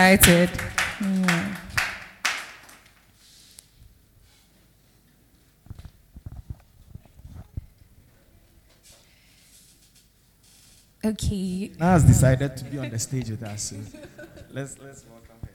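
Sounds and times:
speech: 0:00.0 - 0:00.7, 0:11.0 - 0:15.3
people clapping: 0:00.0 - 0:03.1
laughter: 0:12.6 - 0:14.8.

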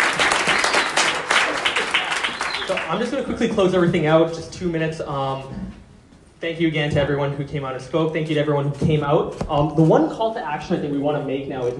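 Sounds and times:
audience applause: 0:00.0 - 0:03.2
speech: 0:02.7 - 0:05.8, 0:06.4 - 0:11.7.

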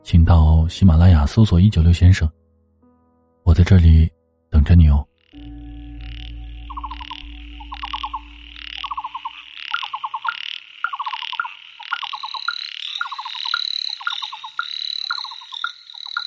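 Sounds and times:
speech: 0:00.1 - 0:02.4, 0:03.5 - 0:05.1
frogs croaking: 0:05.0 - 0:16.2.

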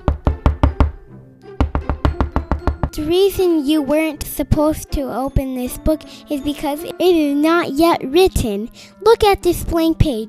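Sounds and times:
knocking on a door: 0:00.0 - 0:01.0, 0:01.6 - 0:03.0
speech: 0:03.0 - 0:10.2.

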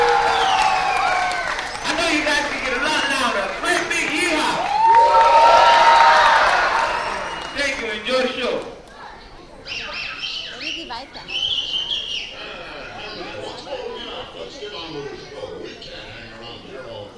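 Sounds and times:
audience clapping and stomping: 0:00.0 - 0:08.0.

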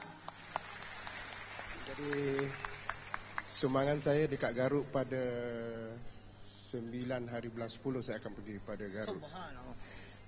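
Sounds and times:
audience applause: 0:00.0 - 0:04.1
speech: 0:01.9 - 0:02.7, 0:03.5 - 0:10.1.

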